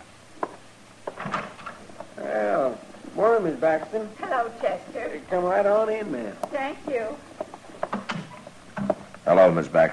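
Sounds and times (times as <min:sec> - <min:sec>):
door opening: 0:01.1 - 0:01.8, 0:07.8 - 0:09.0
speech: 0:03.4 - 0:07.4, 0:09.3 - 0:09.9.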